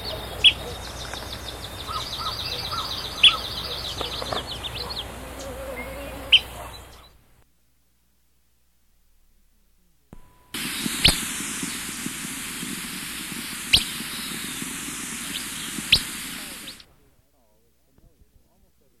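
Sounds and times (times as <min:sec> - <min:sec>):
alder flycatcher call notes: 0:00.0 - 0:07.0, 0:10.2 - 0:17.0
birds chirping: 0:00.0 - 0:07.4, 0:10.2 - 0:17.0
background hiss: 0:00.0 - 0:18.9.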